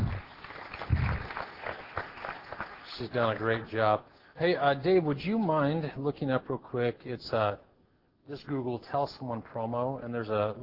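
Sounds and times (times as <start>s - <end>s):
audience applause: 0.0s - 3.6s
speech: 3.0s - 7.7s, 8.3s - 10.6s.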